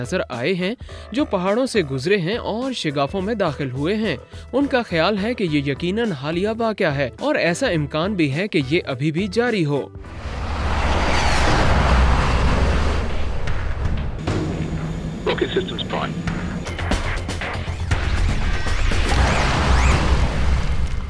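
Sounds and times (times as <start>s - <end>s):
speech: 0.0s - 10.4s, 15.3s - 16.3s
supersonic land speed record car engine: 10.0s - 21.0s.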